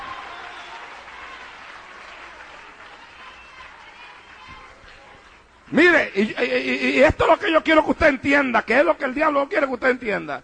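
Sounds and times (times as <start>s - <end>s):
audience applauding: 0.0s - 5.6s
speech: 5.7s - 10.4s.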